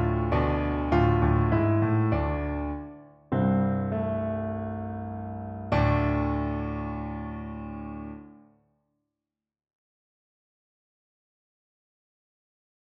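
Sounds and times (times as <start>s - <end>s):
piano: 0.0s - 8.6s.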